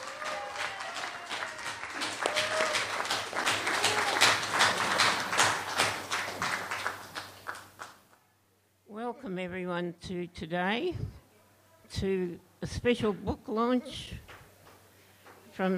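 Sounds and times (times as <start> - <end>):
audience applause: 0.0 - 8.0
speech: 9.3 - 11.2, 12.0 - 14.2, 15.6 - 15.7.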